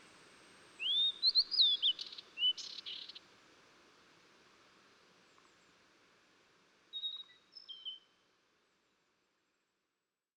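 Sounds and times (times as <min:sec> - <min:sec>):
Blue-and-white flycatcher song of clear slurred whistles and sharp high notes: 0:00.8 - 0:03.2, 0:06.9 - 0:08.2.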